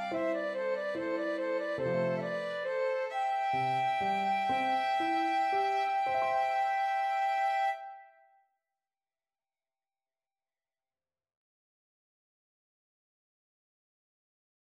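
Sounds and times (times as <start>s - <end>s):
flute and violin duet: 0.0s - 8.2s.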